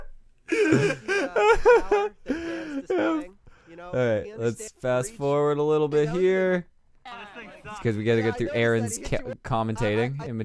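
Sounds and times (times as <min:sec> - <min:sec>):
laughter: 0:00.5 - 0:03.3
speech: 0:00.7 - 0:02.2, 0:02.8 - 0:10.4
heavy voiced panting after boxing: 0:02.0 - 0:03.7.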